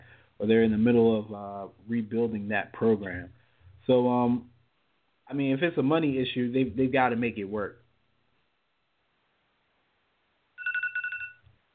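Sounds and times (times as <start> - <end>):
speech: 0.4 - 4.5, 5.3 - 7.8
timer ringing: 10.6 - 11.4.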